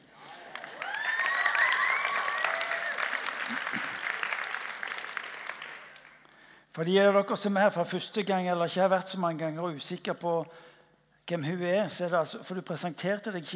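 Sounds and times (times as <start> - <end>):
audience applause: 0.0 - 6.2
faint whistles and cheers: 0.6 - 3.3
speech: 6.8 - 10.7, 11.3 - 13.5.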